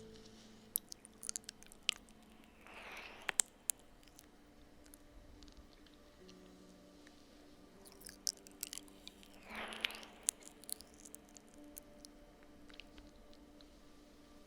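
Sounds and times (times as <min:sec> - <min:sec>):
breathy squishing: 0:00.0 - 0:06.4, 0:07.1 - 0:14.4
faint low hum: 0:00.0 - 0:14.4
wet clicks and smacks of slow ear licks and kisses: 0:00.7 - 0:06.4, 0:07.8 - 0:13.4.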